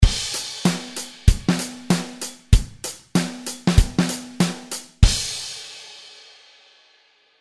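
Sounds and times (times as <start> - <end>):
snare drum accent: 0.0 - 5.4.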